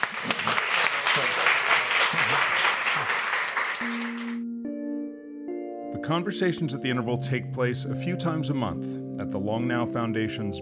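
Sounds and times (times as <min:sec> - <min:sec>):
crowd applauding: 0:00.0 - 0:04.4
speech: 0:06.1 - 0:10.6.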